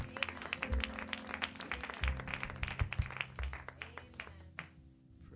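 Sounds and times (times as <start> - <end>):
audience hand clapping: 0.0 - 4.8.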